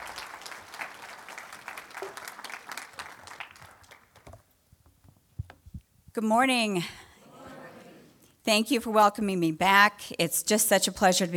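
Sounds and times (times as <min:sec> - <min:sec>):
audience clapping hands: 0:00.0 - 0:04.5
speech: 0:06.2 - 0:07.0, 0:08.5 - 0:11.3.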